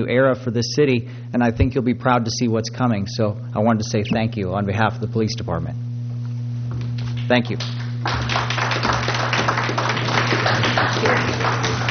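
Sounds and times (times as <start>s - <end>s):
speech: 0.0s - 5.8s, 7.3s - 9.1s, 10.8s - 11.6s
low steady hum: 0.0s - 11.8s
crowd applauding: 7.1s - 11.8s.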